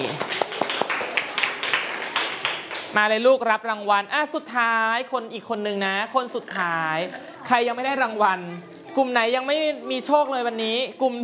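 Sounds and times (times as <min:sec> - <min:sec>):
classroom applause for a pupil: 0:00.0 - 0:02.9
speech: 0:02.9 - 0:11.2.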